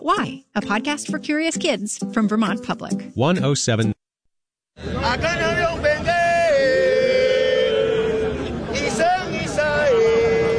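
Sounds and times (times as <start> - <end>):
speech: 0.0 - 4.0
crowd chanting: 4.8 - 10.5.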